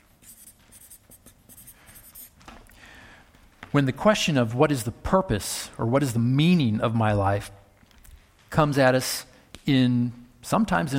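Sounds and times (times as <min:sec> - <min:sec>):
pen scratching writing a note by hand: 0:00.0 - 0:02.4
low noise: 0:00.0 - 0:10.9
speech: 0:03.7 - 0:07.6, 0:08.5 - 0:10.9.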